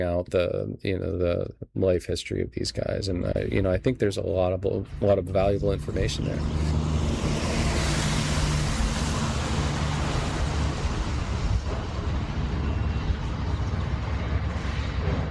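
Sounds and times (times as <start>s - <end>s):
speech: 0.0s - 6.9s
low engine-like hum: 4.8s - 15.3s
gusty wind rumble: 4.9s - 15.3s
waves and lapping water at fishing docks: 6.5s - 14.1s.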